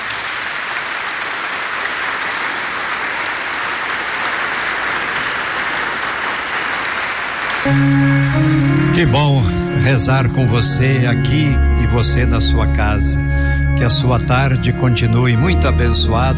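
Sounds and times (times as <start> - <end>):
applause: 0.0 - 9.6
speech: 7.6 - 16.3.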